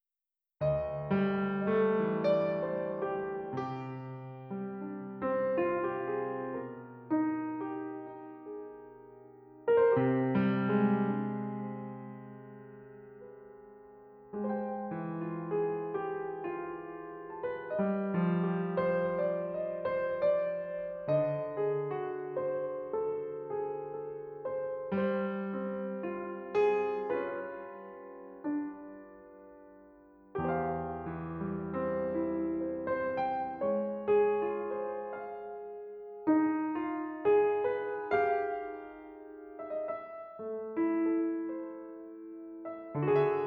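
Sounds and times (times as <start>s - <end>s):
piano: 0.0s - 43.4s.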